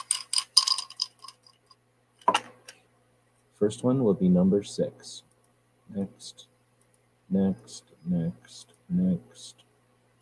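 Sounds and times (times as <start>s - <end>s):
dice rolling in a shaker: 0.0s - 1.4s
speech: 3.6s - 5.3s, 5.9s - 6.5s, 7.3s - 9.6s.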